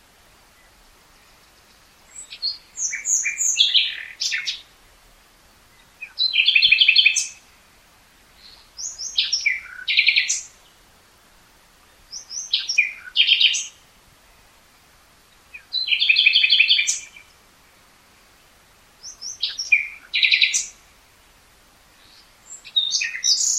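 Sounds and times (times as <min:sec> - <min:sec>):
common nightingale singing: 0:00.4 - 0:04.8, 0:05.6 - 0:07.5, 0:08.3 - 0:10.9, 0:11.7 - 0:13.9, 0:15.2 - 0:17.4, 0:18.3 - 0:21.3, 0:21.9 - 0:23.5.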